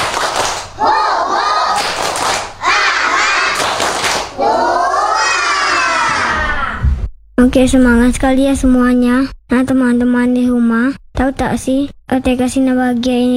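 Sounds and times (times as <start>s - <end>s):
children's rhythmic spirit-clap routine: 0.0s - 6.9s
speech: 7.4s - 13.3s.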